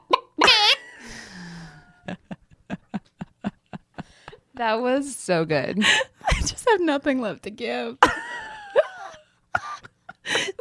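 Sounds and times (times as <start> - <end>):
person imitating a chicken: 0.1 - 0.8
speech: 2.1 - 2.3, 4.6 - 8.1.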